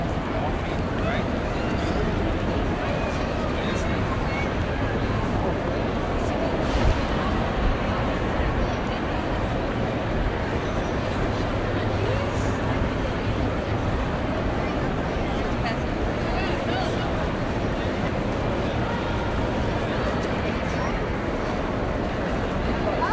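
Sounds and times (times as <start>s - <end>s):
New York City street and subway rumble at Grand Central Station: 0.0s - 23.1s
murmur of voices: 0.0s - 23.1s.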